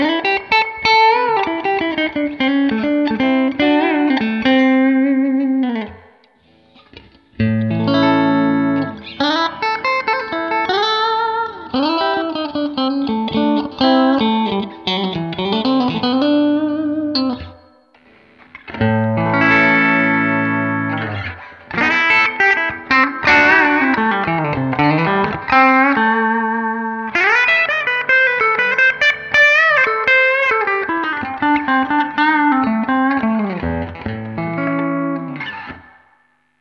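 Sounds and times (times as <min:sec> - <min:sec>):
clean electric guitar through amp emulation: 0:00.0 - 0:36.3.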